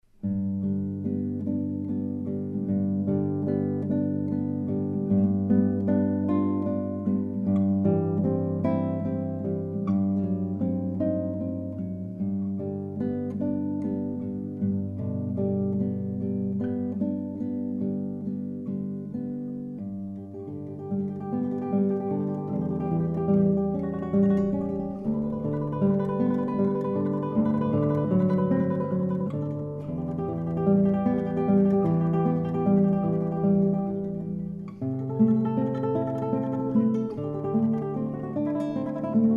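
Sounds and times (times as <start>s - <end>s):
solo guitar piece: 0.0s - 39.3s.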